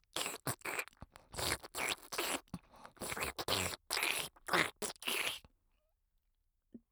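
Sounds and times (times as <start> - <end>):
ear licking sounds: 0.0 - 5.4.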